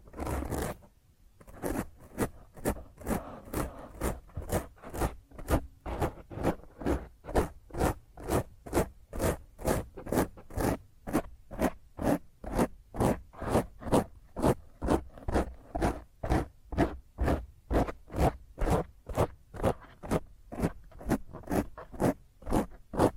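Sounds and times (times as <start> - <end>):
fingernails scratching across a microphone: 0.0 - 23.1.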